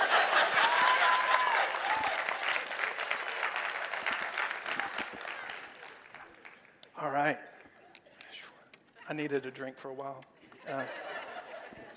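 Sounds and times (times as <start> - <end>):
laughter: 0.0 - 1.6, 10.5 - 11.9
audience clapping: 0.0 - 6.9
speech: 9.1 - 11.1.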